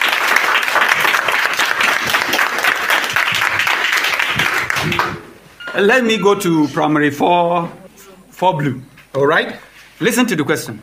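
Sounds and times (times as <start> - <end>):
group applauding: 0.0 - 5.4
speech: 5.8 - 7.8, 8.4 - 10.8.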